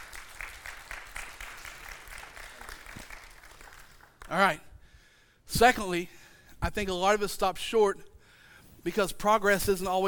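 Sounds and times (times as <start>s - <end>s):
audience clapping in rhythm: 0.0s - 4.8s
speech: 4.3s - 4.7s, 5.5s - 8.1s, 8.8s - 10.0s.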